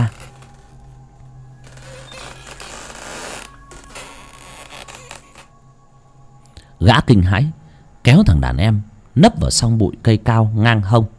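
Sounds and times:
old door hinge creaking: 0.0s - 0.9s, 1.6s - 5.6s
speech: 6.8s - 11.1s.

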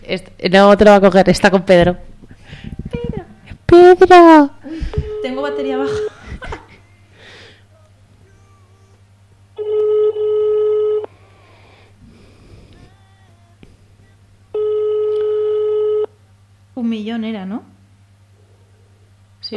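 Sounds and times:
speech: 0.0s - 3.0s, 3.7s - 6.2s, 16.8s - 17.7s
low constant hum: 0.0s - 19.5s
telephone ringing: 5.0s - 6.2s, 9.6s - 11.1s, 14.5s - 16.2s
laughter: 5.8s - 7.0s.

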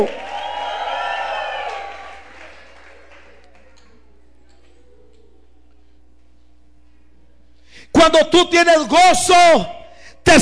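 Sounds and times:
speech: 0.0s - 0.2s, 8.0s - 10.4s
audience applauding and cheering: 0.0s - 4.1s.

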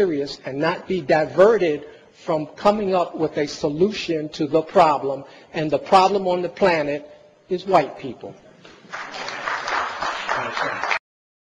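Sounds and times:
speech: 0.0s - 9.3s
small audience applause: 8.9s - 11.0s.

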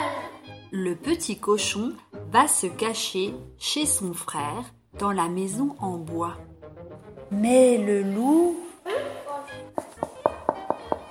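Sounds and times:
speech: 0.7s - 8.7s
knocking on a door: 9.7s - 11.0s.

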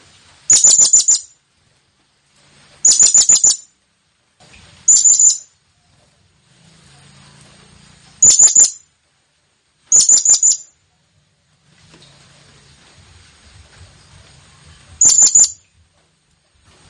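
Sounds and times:
blue-crowned hanging parrot calls: 0.5s - 1.3s, 2.8s - 3.7s, 4.9s - 5.5s, 8.2s - 8.8s, 9.9s - 10.7s, 15.0s - 15.6s.

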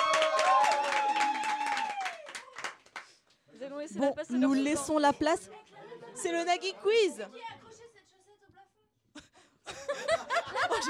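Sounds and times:
small group applauding themselves: 0.0s - 3.8s
speech: 3.9s - 7.5s
laughter: 9.2s - 10.8s.

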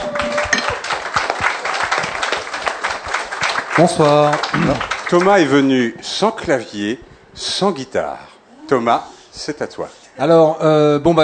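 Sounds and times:
audience applause for a newcomer: 0.0s - 5.7s
speech: 3.8s - 11.2s.

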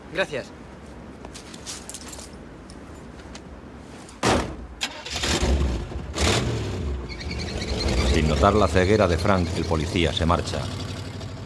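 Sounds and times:
speech: 0.1s - 0.6s, 8.2s - 10.8s
car engine being kept warm starting and revving: 4.8s - 11.4s.

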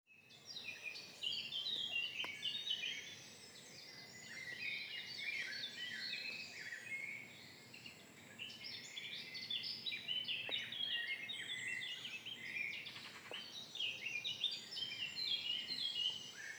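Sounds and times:
birds dawn chorus at a quarry entrance: 0.3s - 16.5s.

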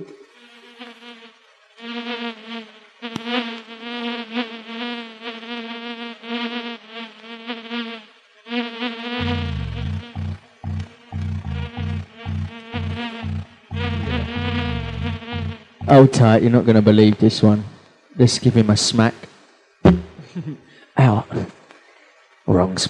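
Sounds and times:
whining insect-like buzz: 0.0s - 20.3s
deep thumping bass pulses: 9.2s - 16.4s, 19.9s - 20.2s
speech: 16.0s - 19.3s.

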